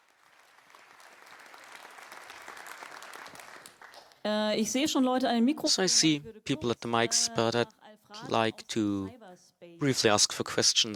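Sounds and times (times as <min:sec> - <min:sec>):
crowd applauding: 0:00.0 - 0:04.2
speech: 0:04.2 - 0:09.2, 0:09.8 - 0:10.9.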